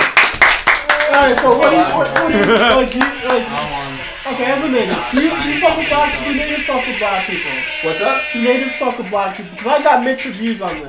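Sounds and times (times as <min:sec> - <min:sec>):
scattered handclaps from an audience: 0:00.0 - 0:04.1
people talking and laughing loudly: 0:00.8 - 0:10.8
speech: 0:01.2 - 0:10.8.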